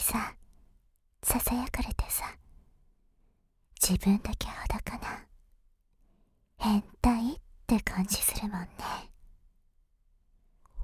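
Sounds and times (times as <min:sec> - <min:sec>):
ASMR whispering: 0:01.3 - 0:02.4, 0:03.8 - 0:05.3, 0:06.6 - 0:09.2.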